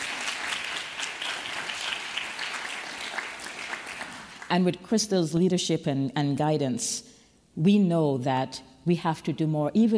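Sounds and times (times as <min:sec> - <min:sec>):
audience applause: 0:00.0 - 0:04.5
speech: 0:04.5 - 0:09.9.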